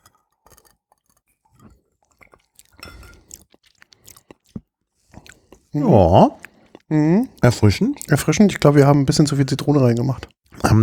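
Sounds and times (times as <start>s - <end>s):
person sipping a pink gin and wine cocktail with lemon slurping: 5.2s - 10.8s
speech: 5.7s - 10.8s.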